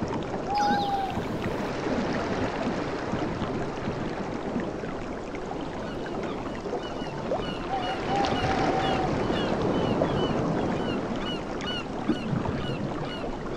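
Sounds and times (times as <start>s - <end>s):
tropical beach surf washing: 0.2s - 13.5s
faint short chirps: 0.5s - 1.6s.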